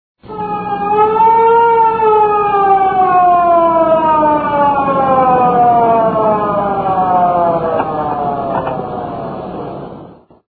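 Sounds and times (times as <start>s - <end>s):
siren: 0.2s - 10.4s.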